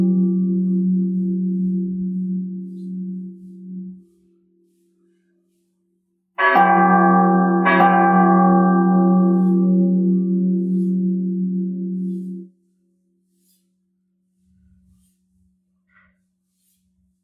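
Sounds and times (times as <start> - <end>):
bell: 0.0 - 4.1, 6.4 - 12.5.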